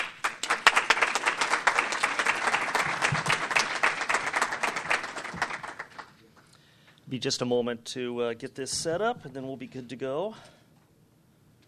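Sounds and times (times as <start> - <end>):
audience applause greeting a speaker: 0.0 - 6.2
speech: 7.1 - 10.6.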